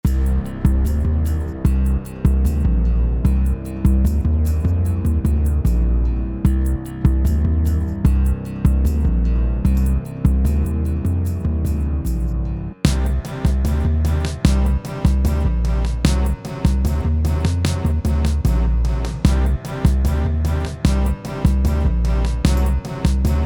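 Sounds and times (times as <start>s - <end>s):
dark music track at 150 BPM: 0.0s - 23.4s.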